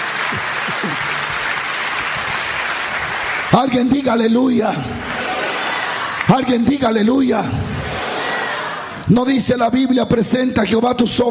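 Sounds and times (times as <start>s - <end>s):
laughter: 0.0s - 1.6s, 4.9s - 9.1s
audience applause: 0.0s - 7.0s
speech: 0.3s - 1.2s, 3.5s - 5.1s, 6.3s - 7.8s, 9.1s - 11.3s.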